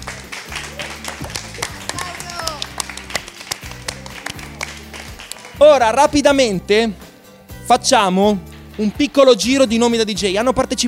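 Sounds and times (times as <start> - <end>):
audience applause: 0.0 - 5.6
speech: 5.6 - 7.0, 7.7 - 10.8.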